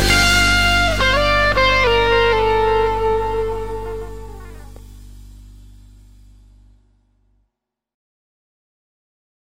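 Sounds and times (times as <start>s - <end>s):
guitar solo with string bends: 0.0s - 4.8s.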